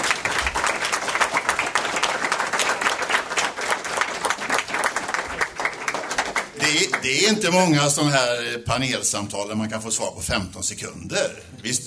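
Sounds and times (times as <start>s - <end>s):
audience applause: 0.0s - 7.6s
speech: 7.0s - 11.8s.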